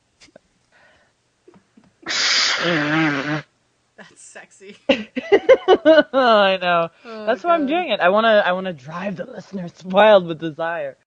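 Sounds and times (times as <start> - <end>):
nose blowing: 2.0 - 3.5
speech: 2.6 - 3.0, 4.4 - 11.0
laughter: 4.9 - 6.4.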